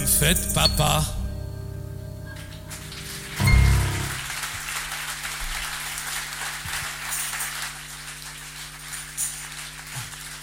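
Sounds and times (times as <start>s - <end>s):
speech: 0.2s - 1.2s
audience applause: 2.4s - 10.4s.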